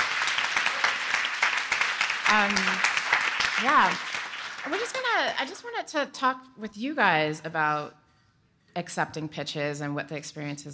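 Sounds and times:
audience applause for pitchers: 0.0s - 5.4s
speech: 2.3s - 2.9s, 3.6s - 8.0s, 8.8s - 10.7s.

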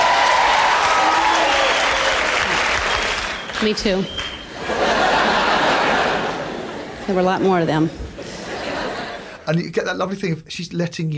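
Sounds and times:
audience applause: 0.0s - 6.6s
speech: 3.6s - 4.8s, 7.1s - 8.0s, 9.5s - 11.1s
laughter: 4.4s - 7.2s, 8.1s - 9.6s.

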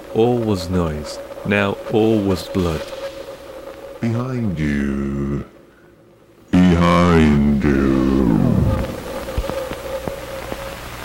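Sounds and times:
sharp crackles and clicks: 0.0s - 5.7s, 6.6s - 11.0s
white noise hissing: 0.0s - 11.0s
speech: 0.1s - 3.0s, 4.0s - 5.5s.

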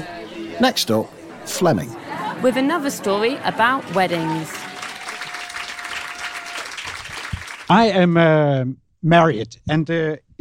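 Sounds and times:
speech: 0.6s - 4.6s, 7.7s - 10.3s
audience clapping at a storytelling event: 3.3s - 7.8s.

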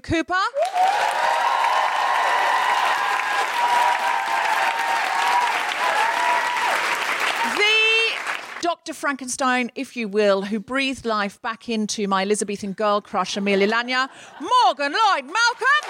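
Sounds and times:
speech: 0.0s - 1.2s, 8.8s - 15.8s
cheering and whoops: 0.6s - 7.6s
large audience applause: 0.6s - 8.6s, 15.6s - 15.8s.

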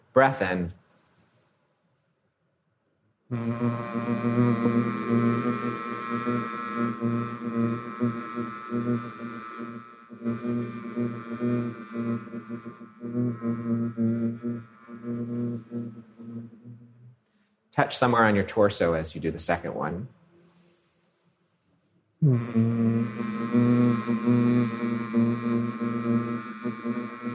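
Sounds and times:
speech: 0.2s - 0.8s, 3.3s - 16.9s, 17.7s - 20.2s, 22.2s - 24.8s
group of voices humming: 3.3s - 17.1s, 22.2s - 27.3s.

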